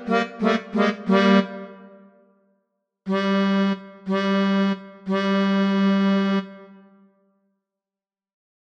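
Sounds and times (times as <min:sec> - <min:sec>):
melodica: 0:00.0 - 0:02.0, 0:03.1 - 0:06.7.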